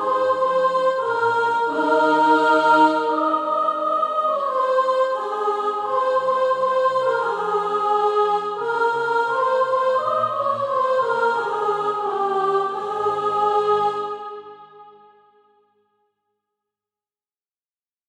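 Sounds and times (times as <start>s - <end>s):
soprano singing SATB practice music: 0.0s - 14.4s.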